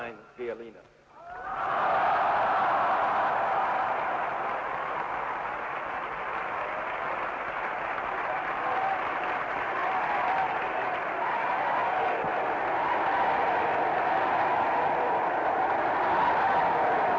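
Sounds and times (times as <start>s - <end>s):
speech: 0.1s - 1.8s
large crowd applauding: 1.2s - 17.1s.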